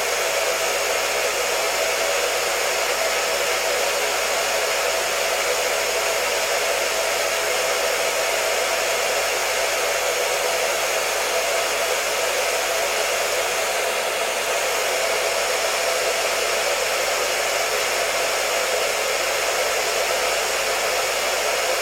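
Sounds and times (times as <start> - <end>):
hair dryer blowing: 0.0 - 21.7.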